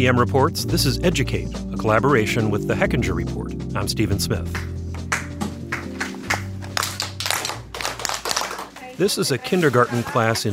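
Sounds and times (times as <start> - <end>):
speech: 0.0 - 4.8, 9.0 - 10.5
teacher's sharp hand claps for class attention: 4.5 - 8.9.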